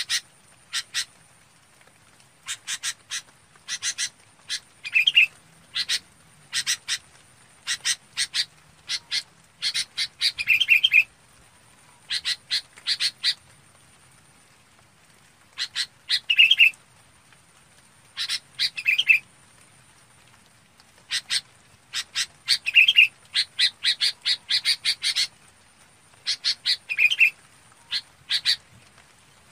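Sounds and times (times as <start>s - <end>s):
red-whiskered bulbul calling: 0.0s - 1.1s, 2.4s - 7.0s, 7.6s - 11.1s, 12.1s - 13.4s, 15.6s - 16.7s, 18.2s - 19.2s, 21.1s - 25.3s, 26.2s - 28.6s.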